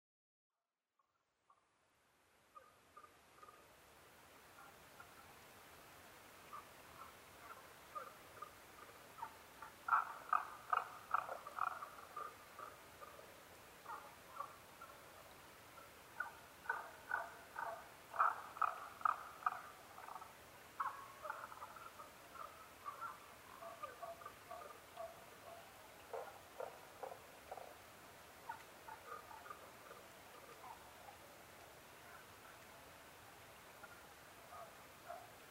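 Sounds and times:
faint hiss: 0:01.6 - 0:35.4
Tago's brown frog knocking calls: 0:09.2 - 0:13.2, 0:16.2 - 0:20.2, 0:22.4 - 0:27.7.

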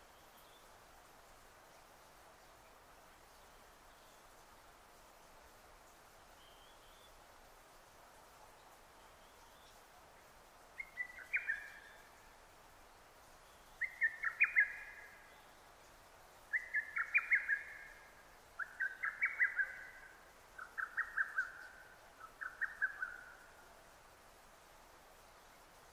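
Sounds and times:
faint background hiss: 0:00.0 - 0:25.9
lesser cuckoo calling: 0:13.8 - 0:15.1, 0:16.5 - 0:17.9, 0:18.6 - 0:23.4.

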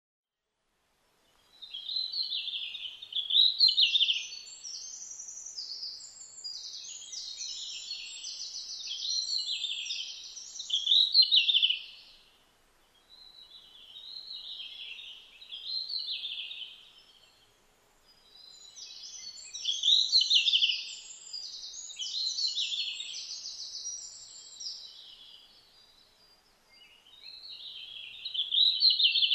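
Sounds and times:
red-flanked bluetail song with quick high twittering phrases: 0:01.2 - 0:29.3.

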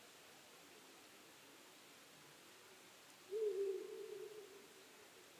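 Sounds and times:
owl hooting: 0:03.3 - 0:04.7.

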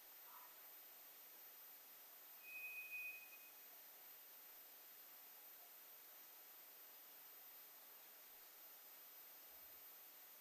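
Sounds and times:
White's thrush high pure whistle: 0:02.4 - 0:03.6.

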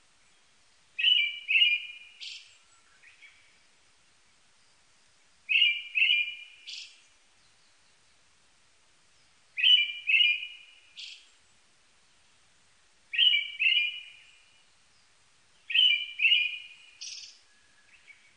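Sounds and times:
brown-headed thrush song: 0:01.0 - 0:03.3, 0:05.5 - 0:06.9, 0:09.6 - 0:11.2, 0:13.1 - 0:14.4, 0:15.7 - 0:18.3.

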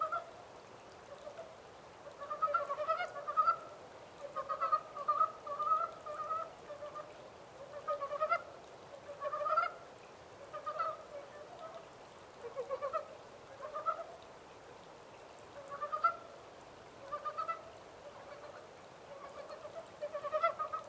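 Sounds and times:
Montane brown frog chorus croaking: 0:01.1 - 0:14.2, 0:15.5 - 0:16.4, 0:17.0 - 0:20.8.

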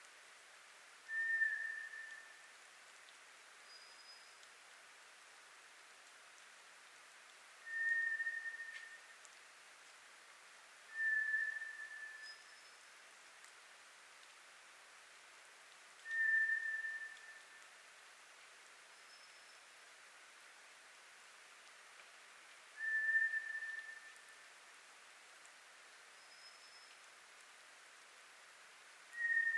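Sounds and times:
hiss: 0:00.0 - 0:29.5
White's thrush long whistle: 0:01.1 - 0:02.5, 0:07.6 - 0:09.1, 0:10.9 - 0:12.8, 0:16.0 - 0:17.6, 0:22.8 - 0:24.4, 0:29.1 - 0:29.5.

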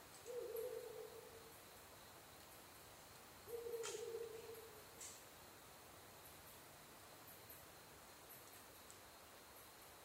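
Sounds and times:
Ural Owl giving deep even hoots: 0:00.3 - 0:01.4, 0:03.5 - 0:04.8
soft high ticks: 0:08.4 - 0:09.0.

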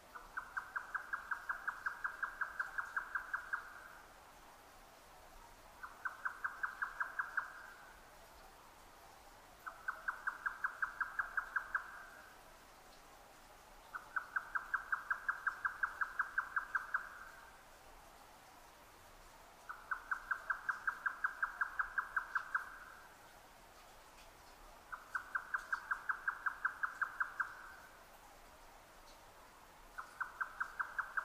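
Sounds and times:
grey nightjar knocking calls: 0:00.1 - 0:03.8, 0:05.8 - 0:07.8, 0:09.6 - 0:12.2, 0:13.9 - 0:17.4, 0:19.7 - 0:23.0, 0:24.9 - 0:27.9, 0:30.0 - 0:31.2.

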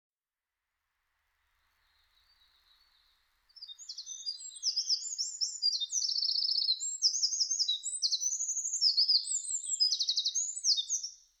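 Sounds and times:
Eurasian wren singing high piercing trills and rattles: 0:03.6 - 0:11.2.

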